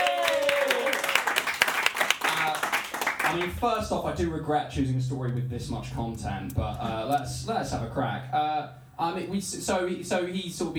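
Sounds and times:
audience applause: 0:00.0 - 0:03.5
speech: 0:03.3 - 0:10.7.

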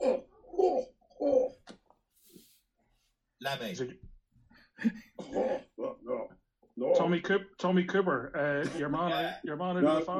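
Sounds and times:
speech: 0:03.4 - 0:04.1, 0:04.8 - 0:05.7, 0:06.8 - 0:10.1
person coughing: 0:05.1 - 0:06.2.

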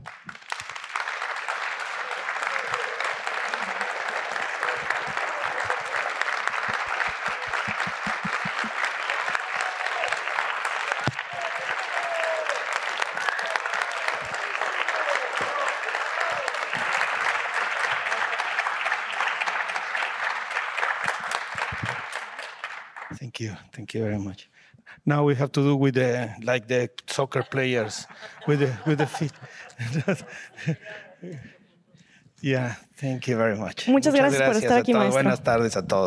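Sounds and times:
large crowd applauding: 0:00.0 - 0:23.2, 0:27.5 - 0:31.0
laughter: 0:01.8 - 0:10.6, 0:26.0 - 0:31.8
speech: 0:23.4 - 0:31.6, 0:32.4 - 0:36.0.

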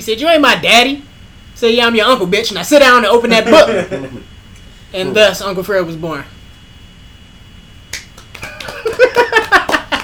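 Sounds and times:
speech: 0:00.0 - 0:04.3, 0:04.9 - 0:06.3
laughter: 0:03.3 - 0:04.3, 0:08.4 - 0:10.0
golf clap: 0:07.9 - 0:10.0.

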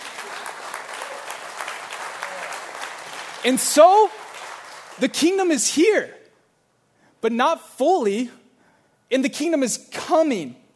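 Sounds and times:
audience clapping: 0:00.0 - 0:05.6
speech: 0:03.4 - 0:04.2, 0:05.0 - 0:06.2, 0:07.2 - 0:08.4, 0:09.1 - 0:10.6.

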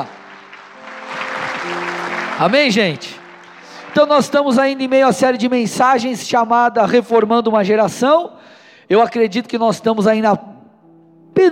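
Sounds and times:
speech: 0:00.0 - 0:00.2, 0:01.6 - 0:03.1, 0:03.9 - 0:10.5, 0:11.4 - 0:11.5
audience applauding loudly: 0:00.0 - 0:05.8.

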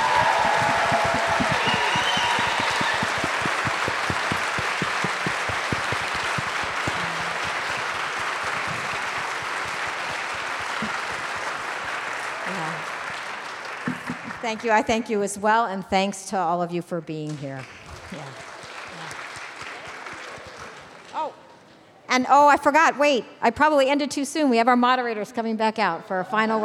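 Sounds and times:
audience applause: 0:00.0 - 0:14.9, 0:17.8 - 0:21.1
speech: 0:14.5 - 0:18.5, 0:22.2 - 0:26.6.

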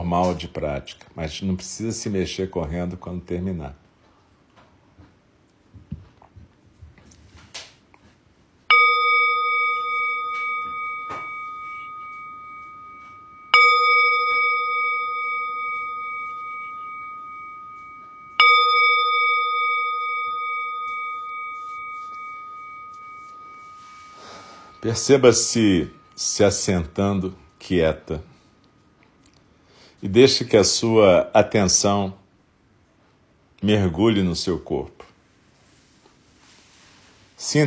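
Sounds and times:
speech: 0:00.0 - 0:03.8, 0:24.9 - 0:28.4, 0:30.0 - 0:32.2, 0:33.6 - 0:35.0, 0:37.4 - 0:37.6
meditation bell ringing: 0:08.7 - 0:29.0.

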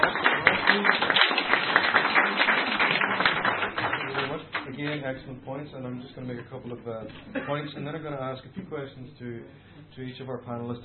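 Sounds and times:
audience applause for a panelist at a panel discussion: 0:00.0 - 0:04.7
speech: 0:00.7 - 0:01.0, 0:05.0 - 0:10.8.

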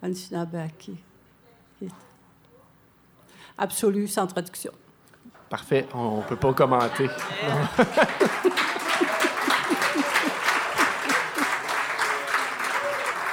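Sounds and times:
speech: 0:00.0 - 0:01.1, 0:01.8 - 0:02.1, 0:03.5 - 0:04.8, 0:05.5 - 0:09.0
laughs and voices: 0:05.8 - 0:11.9
crowd clapping: 0:06.0 - 0:13.3.

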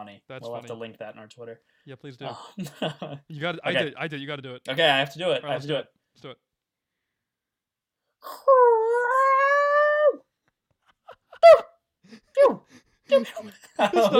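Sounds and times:
speech: 0:00.0 - 0:06.5, 0:08.2 - 0:08.8, 0:11.4 - 0:14.1
laughter: 0:02.4 - 0:03.5, 0:13.1 - 0:14.1
person vocally imitating a dog run over by a speeder: 0:08.3 - 0:10.3.

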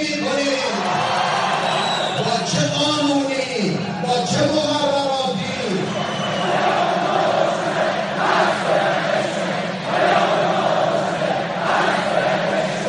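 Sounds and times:
crowd roar: 0:00.2 - 0:12.8
crowd chanting a Persian political slogan: 0:06.0 - 0:12.8.

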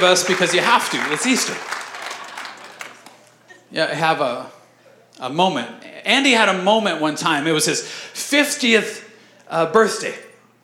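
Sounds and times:
speech: 0:00.0 - 0:01.8, 0:03.7 - 0:04.6, 0:05.2 - 0:10.3
audience hand clapping: 0:00.0 - 0:03.4.

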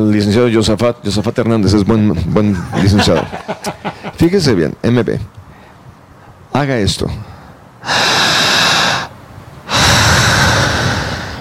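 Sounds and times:
speech: 0:00.0 - 0:05.4, 0:06.6 - 0:08.3
laughter: 0:02.6 - 0:04.2
forceful breathing in: 0:07.3 - 0:11.3.

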